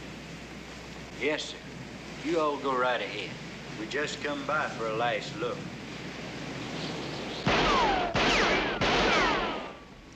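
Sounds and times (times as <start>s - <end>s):
speech: 1.2s - 5.8s
pistol shots fired at a sign on a farm: 7.5s - 9.9s.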